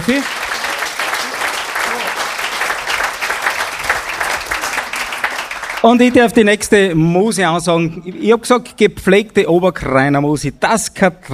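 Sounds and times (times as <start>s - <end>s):
applause: 0.0s - 6.4s
speech: 0.1s - 0.5s, 5.8s - 11.3s.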